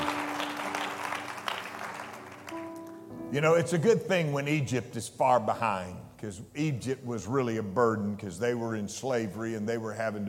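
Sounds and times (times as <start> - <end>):
audience clapping: 0.0 - 3.0
speech: 3.3 - 10.2.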